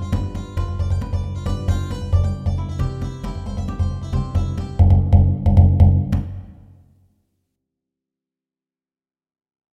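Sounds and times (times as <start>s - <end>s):
rhythmic study for jongo: 0.0s - 6.6s.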